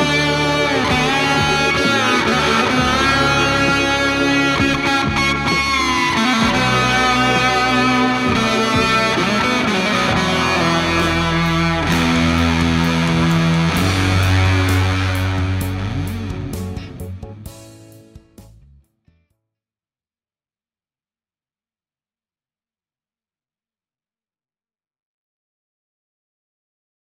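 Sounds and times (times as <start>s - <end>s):
Fender strat solo through Sunface, MXR Carbon Copy delay, Fender Twin reverb: 0.0s - 17.6s
backing track: 0.0s - 18.8s.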